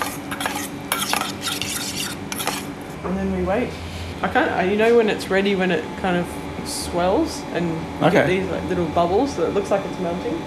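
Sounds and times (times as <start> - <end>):
whisking a pepper and salt salad dressing in a bowl: 0.0 - 2.7
speech: 3.1 - 10.4.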